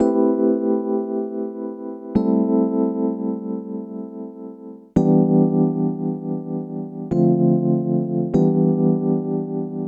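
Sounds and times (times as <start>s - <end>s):
keyboard: 0.0s - 9.8s.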